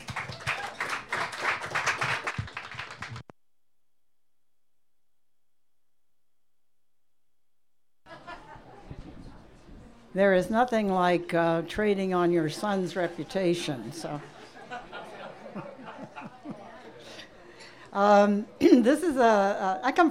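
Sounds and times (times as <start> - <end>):
audience applause welcoming a poet onto the stage: 0.0 - 3.2
laughter: 8.1 - 9.1, 14.0 - 17.1
speech: 10.2 - 14.4, 18.0 - 20.0.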